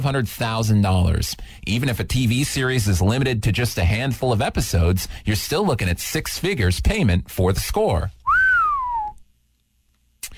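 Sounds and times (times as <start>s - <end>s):
speech: 0.0s - 8.2s
person whistling a downward-sliding note: 8.2s - 9.2s.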